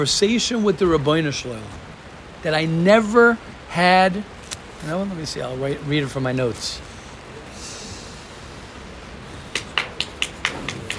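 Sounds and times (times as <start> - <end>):
speech: 0.0 - 1.8, 2.4 - 6.9
audience clapping: 9.5 - 10.9.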